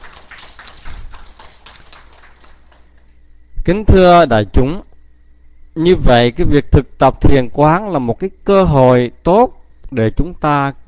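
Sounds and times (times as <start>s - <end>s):
audience applause: 0.0s - 3.1s
speech: 3.7s - 4.9s, 5.8s - 10.8s.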